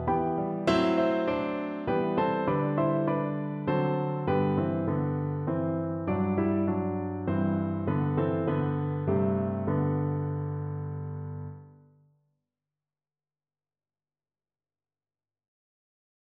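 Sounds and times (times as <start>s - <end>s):
piano duet: 0.0s - 11.8s.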